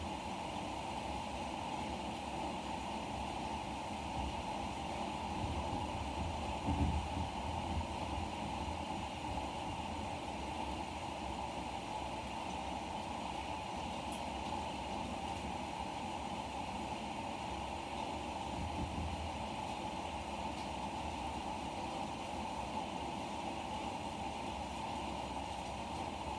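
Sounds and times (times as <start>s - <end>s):
thunderstorm rain shower pouring: 0.0s - 26.3s.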